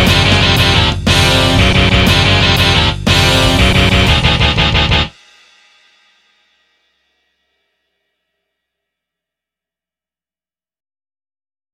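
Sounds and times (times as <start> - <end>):
heavy metal music: 0.0 - 5.2.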